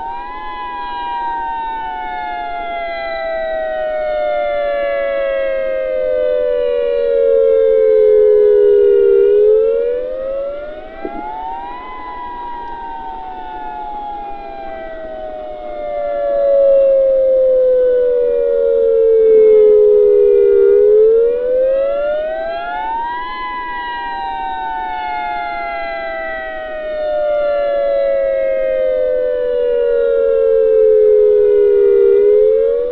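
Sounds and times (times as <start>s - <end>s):
dual tone attack siren: 0.0s - 32.8s.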